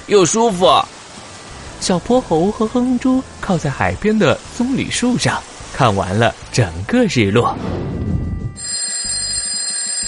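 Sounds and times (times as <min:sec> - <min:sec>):
speech: 0:00.1 - 0:01.0, 0:01.8 - 0:08.1
alarm clock ringing in a bedroom: 0:08.6 - 0:10.0.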